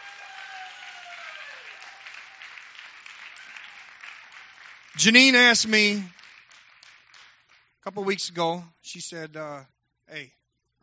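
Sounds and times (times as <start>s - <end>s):
audience clapping: 0.0s - 8.6s
speech: 4.9s - 6.2s, 7.9s - 10.4s.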